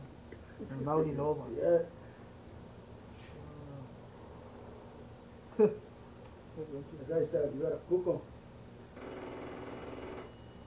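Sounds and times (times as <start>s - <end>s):
faint steady hum: 0.0s - 10.6s
speech: 0.6s - 2.0s, 5.6s - 5.9s, 6.6s - 8.4s
telephone ringing: 8.9s - 10.6s.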